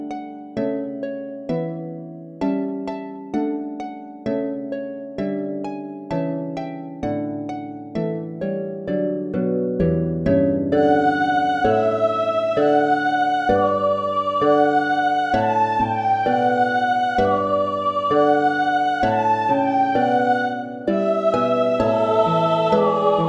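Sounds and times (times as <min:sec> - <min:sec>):
harp playing: 0:00.0 - 0:23.2
person singing: 0:10.8 - 0:23.2.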